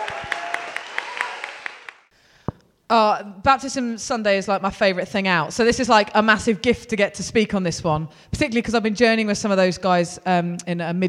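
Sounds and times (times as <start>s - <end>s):
round of applause: 0.0s - 2.1s
speech: 2.9s - 11.0s.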